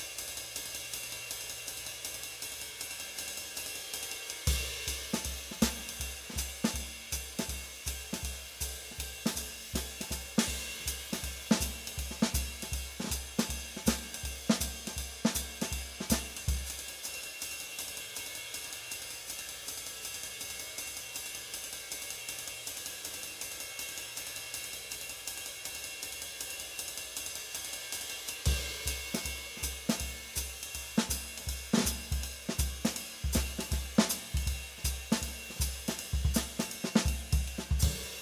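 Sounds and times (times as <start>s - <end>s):
uptempo bop drumming: 4.5s - 16.8s, 28.5s - 38.1s.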